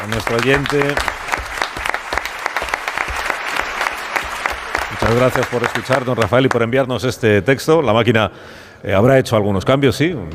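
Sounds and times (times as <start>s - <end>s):
speech: 0.0s - 1.2s, 5.0s - 10.3s
applause: 0.0s - 6.9s.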